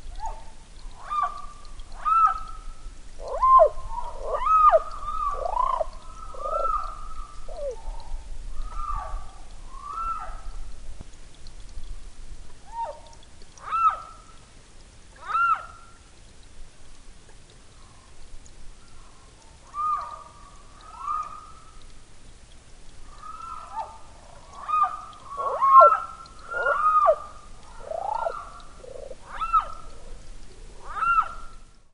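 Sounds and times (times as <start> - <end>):
background hiss: 0.0 - 31.9
Ishikawa's frog calling: 1.0 - 8.0, 19.7 - 21.7, 23.0 - 31.6.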